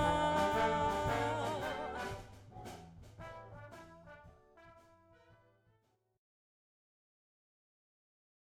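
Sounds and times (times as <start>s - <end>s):
jazz combo with vocals: 0.0s - 4.9s.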